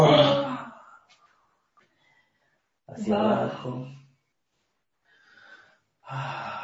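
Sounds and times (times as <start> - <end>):
speech: 3.0 - 4.0, 6.1 - 6.6
deep inhalation in a breathing exercise: 5.1 - 6.6.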